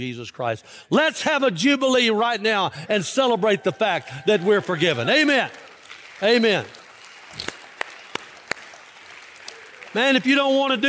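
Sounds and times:
speech: 0:00.0 - 0:07.5, 0:10.0 - 0:10.8
audience clapping in a steady rhythm: 0:03.4 - 0:10.8.

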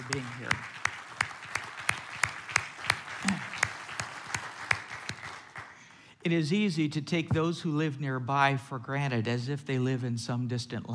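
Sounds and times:
audience applause: 0:00.0 - 0:06.0
speech: 0:00.1 - 0:00.8, 0:06.2 - 0:10.9.

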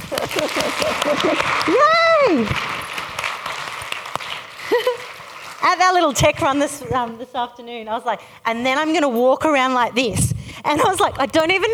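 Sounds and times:
laughter: 0:00.0 - 0:02.8, 0:04.3 - 0:05.7
applause: 0:00.0 - 0:07.0
speech: 0:00.2 - 0:02.8, 0:05.6 - 0:11.7.

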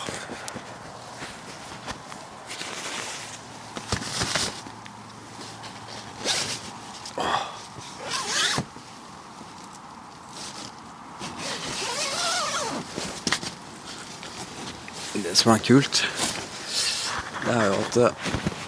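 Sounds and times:
sleeping bag fabric rustling and scraping: 0:00.0 - 0:07.1, 0:07.7 - 0:18.6
sleeping bag rasping zipper-like pulls: 0:08.0 - 0:08.7, 0:11.2 - 0:13.1
speech: 0:15.4 - 0:16.2, 0:17.5 - 0:18.4.

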